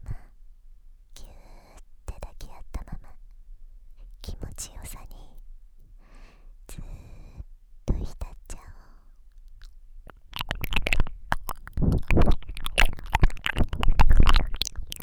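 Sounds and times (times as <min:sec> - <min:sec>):
ear licking: 0:09.6 - 0:15.0.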